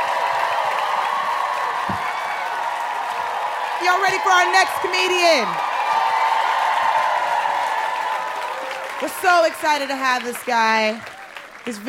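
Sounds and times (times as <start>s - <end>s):
audience applause and cheering: 0.0s - 11.8s
speech: 3.8s - 5.7s, 9.0s - 11.8s.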